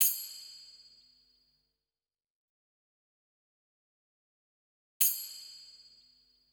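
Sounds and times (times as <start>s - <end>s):
percussion: 0.0s - 1.6s, 5.0s - 6.5s.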